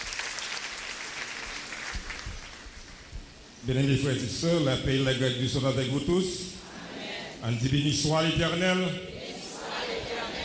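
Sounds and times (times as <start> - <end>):
audience applause: 0.0 - 2.8
speech: 3.6 - 6.5, 7.4 - 9.1.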